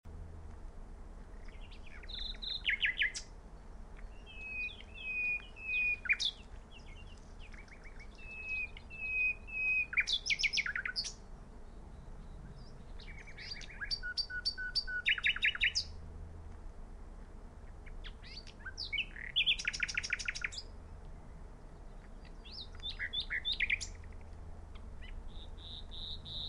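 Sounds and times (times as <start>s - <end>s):
common nightingale song: 1.2s - 16.0s, 17.6s - 26.4s.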